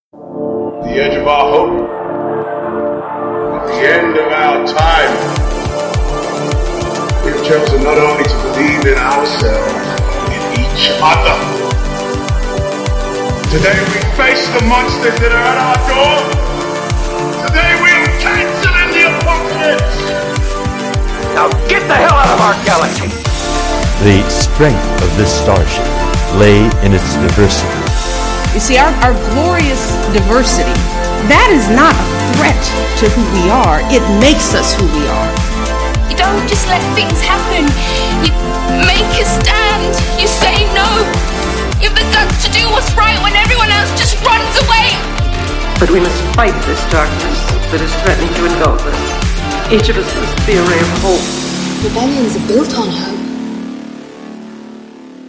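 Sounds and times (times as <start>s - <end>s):
intro music: 0.1s - 55.2s.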